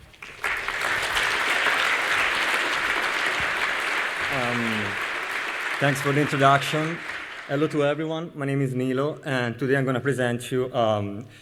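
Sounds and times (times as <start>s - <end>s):
audience applause: 0.0s - 8.0s
speech: 4.4s - 5.0s, 5.8s - 11.4s.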